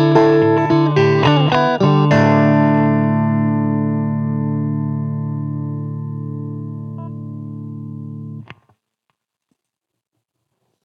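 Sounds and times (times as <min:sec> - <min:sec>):
electric guitar piece in D on a Stratocaster through GeAmp: 0:00.0 - 0:08.6.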